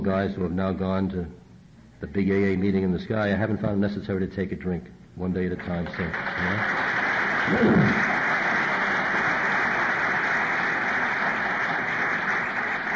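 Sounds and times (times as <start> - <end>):
speech: 0.0 - 1.4, 2.0 - 6.9, 7.5 - 8.2
audience applause: 5.9 - 12.9.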